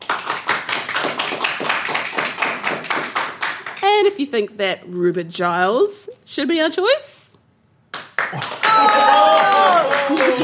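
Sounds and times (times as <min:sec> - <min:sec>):
audience clapping to vote: 0:00.0 - 0:03.9, 0:07.9 - 0:10.4
speech: 0:04.0 - 0:07.2.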